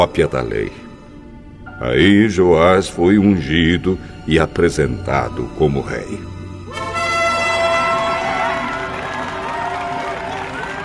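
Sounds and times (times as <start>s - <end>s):
speech: 0.0s - 0.9s, 1.8s - 6.8s
crowd clapping and cheering: 6.8s - 10.8s.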